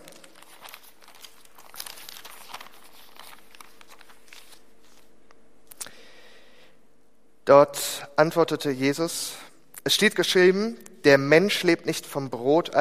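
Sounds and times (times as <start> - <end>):
thin Bible pages being turned: 0.0 - 5.1
speech: 7.5 - 12.7.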